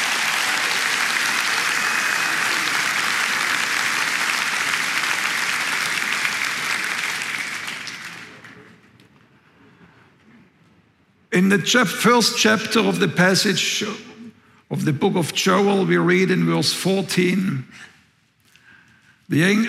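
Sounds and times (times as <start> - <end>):
audience applause: 0.0 - 8.9
speech: 11.4 - 14.1, 14.8 - 17.9, 19.3 - 19.6.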